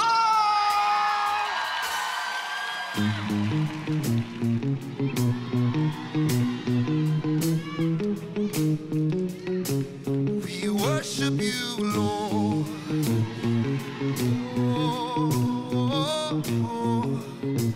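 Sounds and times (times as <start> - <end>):
crowd cheering and whooping at a worship gathering: 0.0 - 8.7, 12.2 - 17.7
band music with low chords and pulsing beats: 0.0 - 17.7
speech: 3.0 - 6.5.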